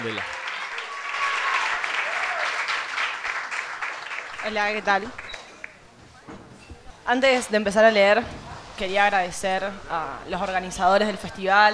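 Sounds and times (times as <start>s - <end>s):
speech: 0.0s - 0.4s, 4.4s - 5.2s, 7.1s - 11.7s
audience applause: 0.0s - 6.2s.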